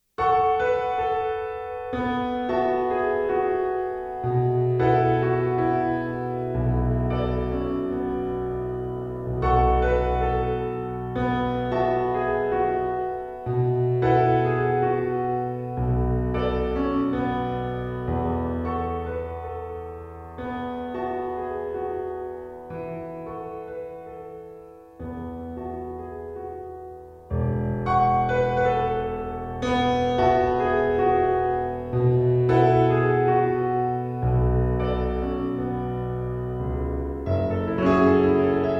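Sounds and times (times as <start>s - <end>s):
pop piano: 0.2s - 38.7s.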